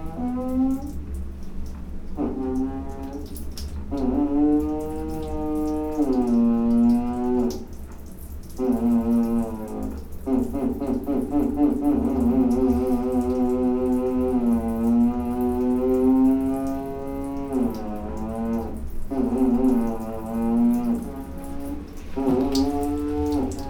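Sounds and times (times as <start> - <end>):
shower running in Brazil: 0.0 - 23.6.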